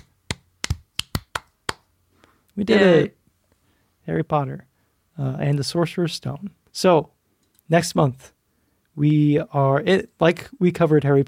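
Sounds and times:
hand clapping: 0:00.0 - 0:01.9
speech: 0:02.6 - 0:03.2, 0:04.0 - 0:08.4, 0:09.0 - 0:11.2.

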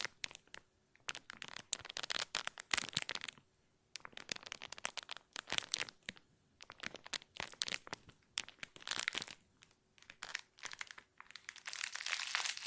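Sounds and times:
plastic crinkling: 0:00.0 - 0:03.4, 0:04.0 - 0:12.6.

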